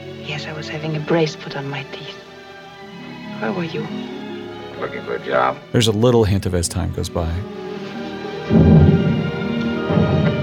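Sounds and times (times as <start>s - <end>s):
speech: 0.3s - 2.3s, 3.4s - 4.2s, 4.8s - 7.6s
distant cannon fire: 8.4s - 10.4s.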